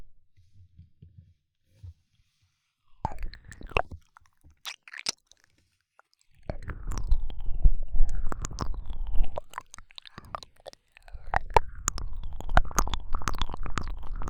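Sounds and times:
ear licking: 3.0 - 14.2.

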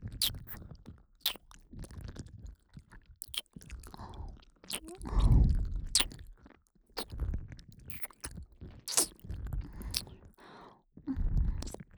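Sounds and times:
ear licking in the right ear: 0.2 - 0.6, 1.2 - 1.5, 3.2 - 6.2, 7.9 - 10.2, 11.5 - 11.8.

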